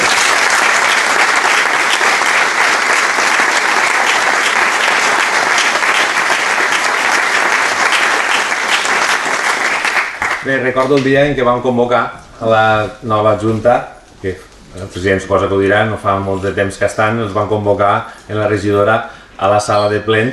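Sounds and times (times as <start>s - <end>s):
audience applause: 0.0s - 11.0s
speech: 10.5s - 20.3s.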